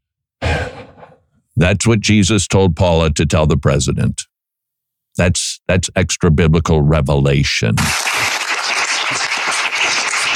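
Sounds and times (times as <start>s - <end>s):
speech: 1.6s - 4.3s, 5.2s - 8.3s
audience applause at a gathering: 7.9s - 10.3s.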